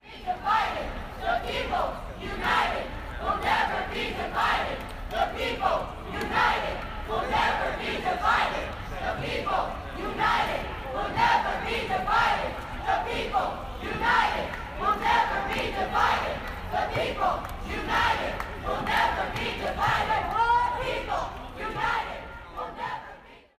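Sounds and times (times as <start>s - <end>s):
chanting: 0.0s - 23.5s.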